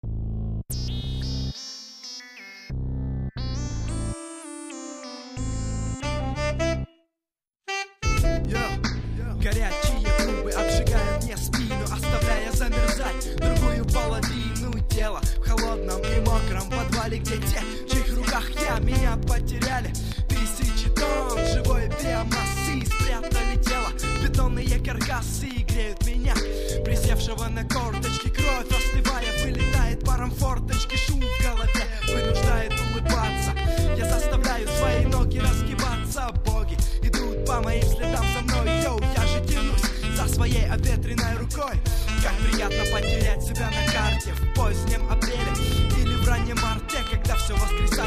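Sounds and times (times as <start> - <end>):
trumpet remix music: 0.7 - 48.0.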